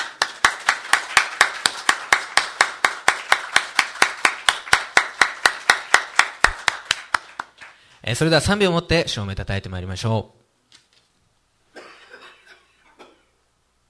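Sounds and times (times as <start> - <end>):
church audience applause: 0.0 - 7.8
speech: 8.1 - 10.4.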